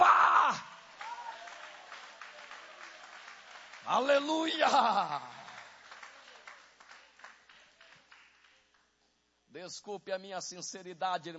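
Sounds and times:
audience applauding: 0:00.0 - 0:08.8
speech: 0:03.9 - 0:05.4, 0:09.6 - 0:11.3.

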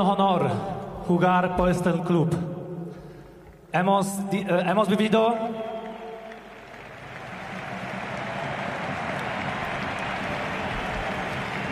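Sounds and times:
speech: 0:00.0 - 0:02.5, 0:03.7 - 0:05.7
large stadium crowd applauding at Camp Nou: 0:05.3 - 0:11.7.

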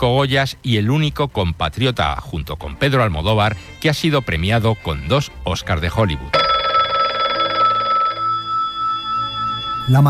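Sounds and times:
speech: 0:00.0 - 0:06.5, 0:09.9 - 0:10.0
telephone bell ringing: 0:06.4 - 0:10.0.

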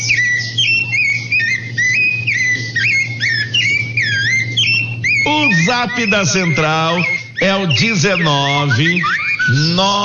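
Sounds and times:
small bird singing: 0:00.0 - 0:10.0
speech: 0:05.3 - 0:10.0.

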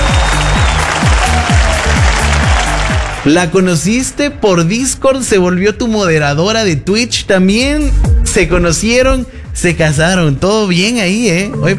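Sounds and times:
applause sound effect: 0:00.0 - 0:04.2
speech: 0:03.2 - 0:11.7.

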